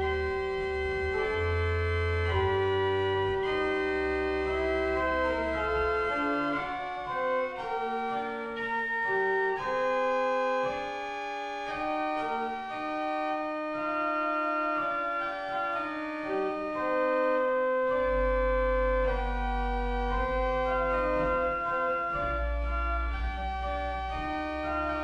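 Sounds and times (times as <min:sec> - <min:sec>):
pipe organ: 0:00.0 - 0:25.0.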